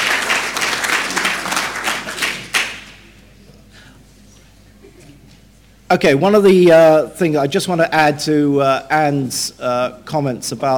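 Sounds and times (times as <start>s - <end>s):
audience round of applause: 0.0s - 3.0s
speech: 5.9s - 10.7s.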